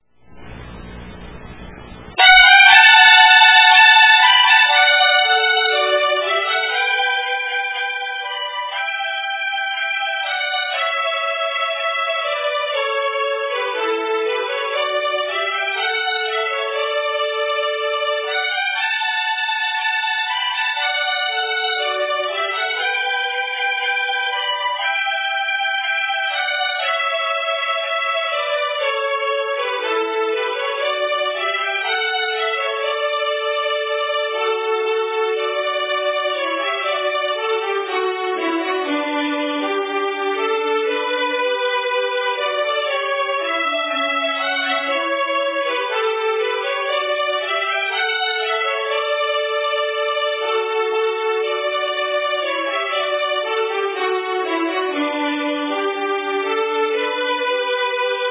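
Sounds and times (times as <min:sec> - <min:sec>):
wedding march music: 0:00.1 - 0:58.2.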